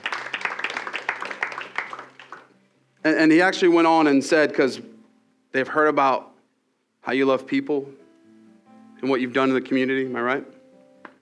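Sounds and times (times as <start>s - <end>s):
audience clapping: 0.0s - 2.6s
speech: 3.0s - 4.9s, 5.5s - 6.3s, 7.1s - 8.0s, 9.0s - 10.6s.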